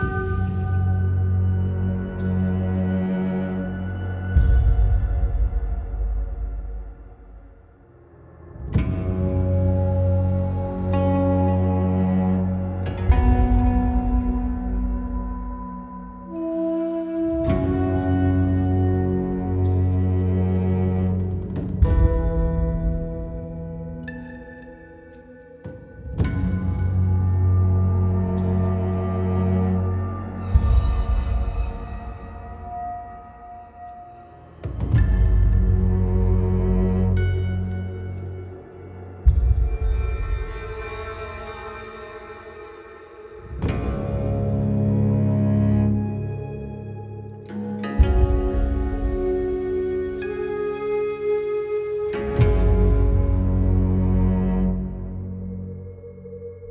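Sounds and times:
music: 0.0s - 56.6s.

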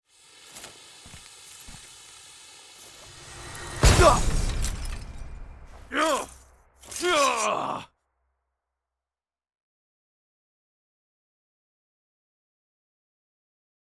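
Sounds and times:
orb shattering: 3.8s - 7.8s.

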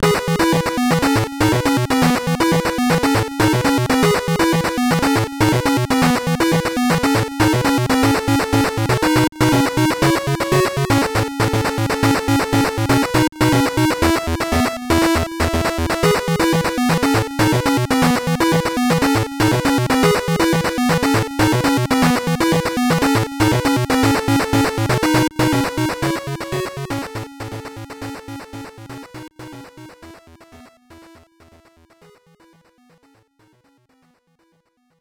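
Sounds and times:
background music: 0.0s - 31.6s.

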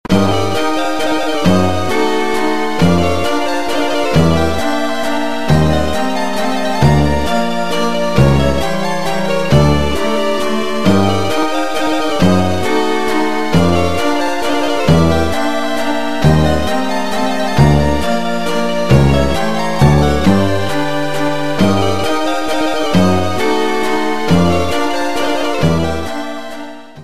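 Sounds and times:
RPG-style fantasy castle music: 0.1s - 27.0s.

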